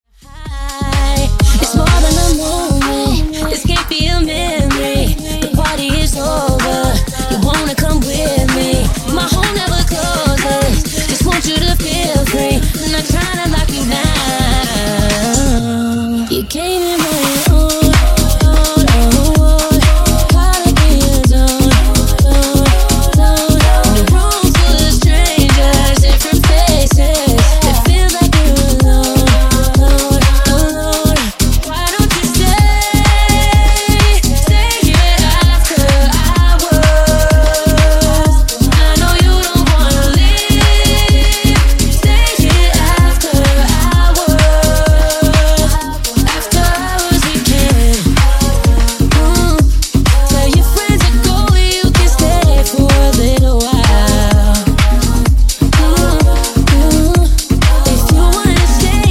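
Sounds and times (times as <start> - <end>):
mash-up music: 0.2 - 59.0.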